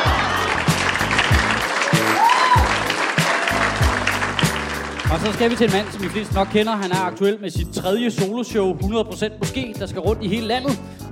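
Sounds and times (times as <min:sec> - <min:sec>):
audience applause: 0:00.0 - 0:07.0
speech: 0:05.1 - 0:11.0.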